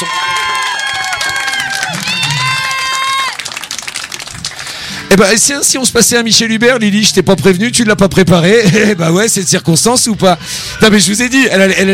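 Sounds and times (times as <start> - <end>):
parents applauding: 0.0 - 5.2
speech: 5.1 - 11.9.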